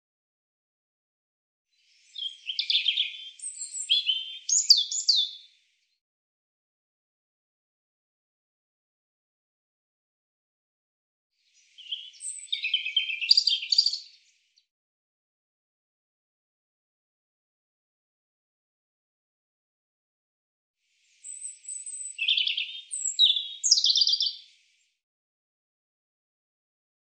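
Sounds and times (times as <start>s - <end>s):
European robin song: 1.7s - 6.0s, 11.4s - 14.7s, 20.8s - 25.0s.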